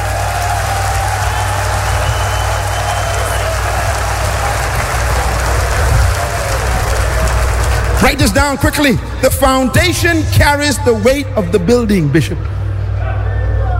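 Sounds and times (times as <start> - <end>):
audience clapping hands: 0.0 - 9.9
low humming rumble: 0.0 - 13.7
speech: 8.0 - 12.6.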